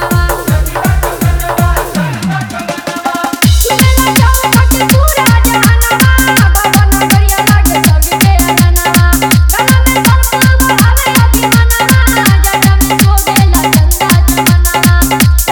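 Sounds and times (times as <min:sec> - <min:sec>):
dholak dance mix with bass: 0:00.0 - 0:15.5.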